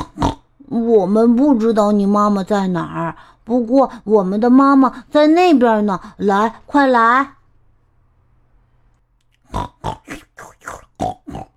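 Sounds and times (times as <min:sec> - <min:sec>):
piglets grunting while nursing from their mother sow: 0:00.0 - 0:00.6, 0:09.4 - 0:11.5
speech: 0:00.7 - 0:07.4, 0:09.5 - 0:10.2.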